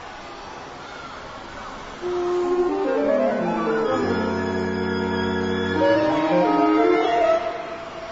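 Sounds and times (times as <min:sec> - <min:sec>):
saxophone quartet with fixed media: 0:02.0 - 0:07.8.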